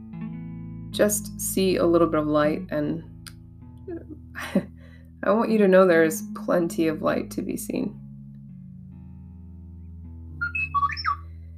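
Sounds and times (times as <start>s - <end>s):
speech: 0.9s - 3.1s, 3.9s - 8.0s
phone ringtone chiming a short electronic melody: 10.4s - 11.2s.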